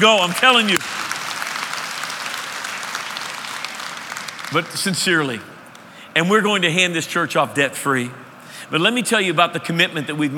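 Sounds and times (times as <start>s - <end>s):
speech: 0.0s - 1.0s, 4.5s - 5.5s, 6.2s - 10.3s
clapping: 0.2s - 4.8s.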